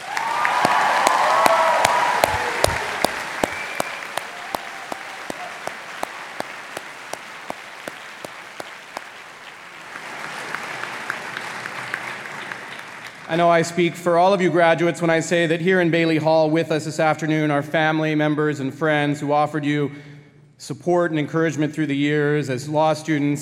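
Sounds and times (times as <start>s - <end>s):
round of applause for family and friends: 0.0s - 13.5s
speech: 13.3s - 23.4s.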